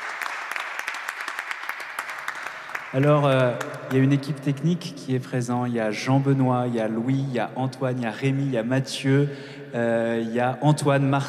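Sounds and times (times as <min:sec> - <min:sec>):
concert audience applauding a singer: 0:00.0 - 0:04.1
speech: 0:02.9 - 0:11.2.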